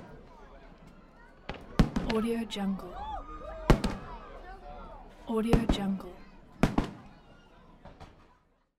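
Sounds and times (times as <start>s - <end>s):
crowd: 0.0s - 8.7s
fireworks: 1.5s - 2.5s, 3.6s - 4.2s, 5.4s - 7.2s.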